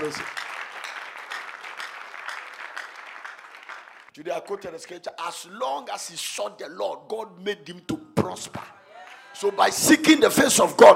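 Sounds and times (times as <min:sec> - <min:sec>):
speech: 0:00.0 - 0:00.4, 0:04.2 - 0:08.8, 0:09.4 - 0:10.9
audience clapping: 0:00.0 - 0:05.1.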